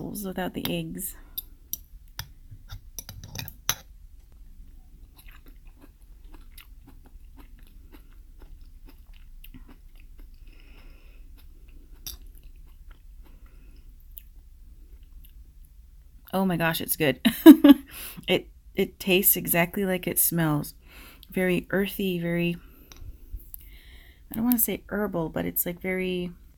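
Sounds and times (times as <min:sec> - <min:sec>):
speech: 0:00.0 - 0:01.3, 0:16.4 - 0:22.7, 0:24.3 - 0:26.4
biting and chewing a piece of green fern: 0:04.2 - 0:15.4.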